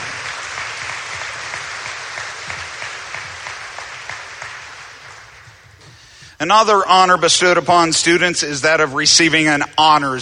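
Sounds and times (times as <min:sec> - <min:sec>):
audience applause: 0:00.0 - 0:06.1
speech: 0:06.4 - 0:10.2.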